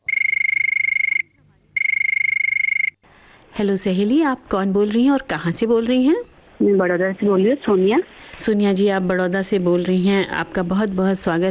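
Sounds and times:
telephone ringing: 0.0 - 3.0
speech: 3.6 - 11.4.

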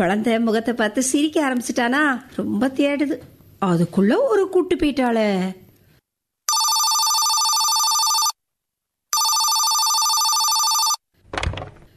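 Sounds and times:
speech: 0.0 - 5.6
telephone ringing: 6.5 - 8.4, 9.1 - 11.0.

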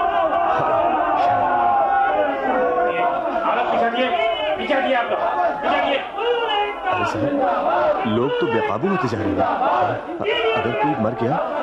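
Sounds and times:
crowd shouting slogans: 0.0 - 11.6
speech: 7.1 - 11.6.

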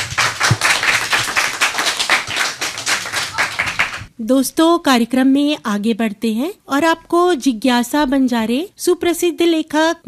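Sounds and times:
audience applause for a recited poem: 0.0 - 4.1
speech: 4.2 - 10.0.

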